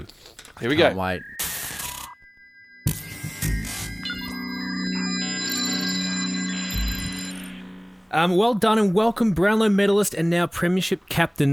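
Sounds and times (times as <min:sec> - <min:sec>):
speech: 0:00.6 - 0:01.4, 0:08.1 - 0:11.5
old mobile phone powering on with startup melody: 0:00.8 - 0:08.2
low hum: 0:01.4 - 0:08.2.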